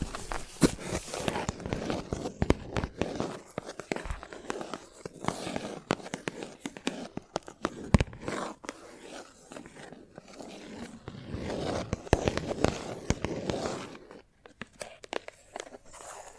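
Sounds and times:
chalk tapping, scratching and carving: 0.2s - 16.3s.

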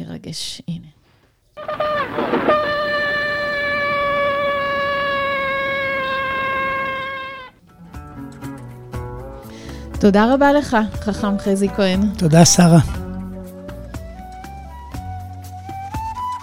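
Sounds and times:
speech: 0.2s - 0.8s, 10.0s - 13.0s
shofar blast: 1.6s - 7.6s.

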